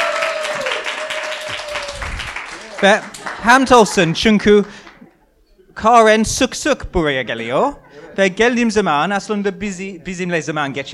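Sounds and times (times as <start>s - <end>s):
applause welcoming a guest speaker at a religious gathering: 0.0s - 3.8s
speech: 2.8s - 4.8s, 5.8s - 10.9s.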